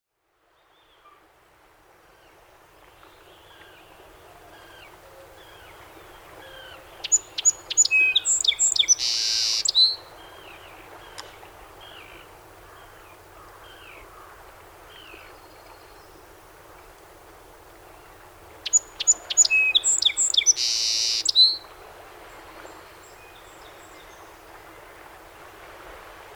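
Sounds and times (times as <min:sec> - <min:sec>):
song sparrow song of whistles and trills: 0:07.0 - 0:10.0, 0:18.6 - 0:21.7.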